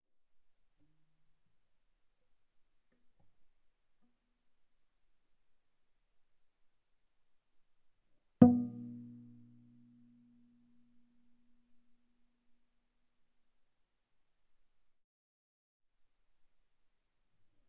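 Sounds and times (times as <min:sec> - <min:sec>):
viola pizzicato fortissimo sul G: 0:08.4 - 0:09.3.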